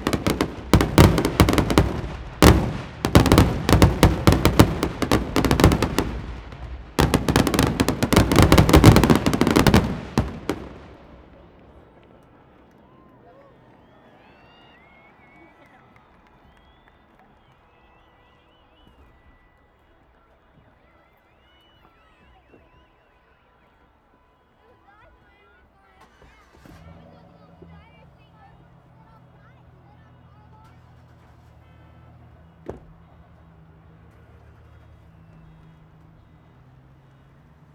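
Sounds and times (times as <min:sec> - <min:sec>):
fireworks: 0:00.0 - 0:12.6, 0:32.4 - 0:36.4.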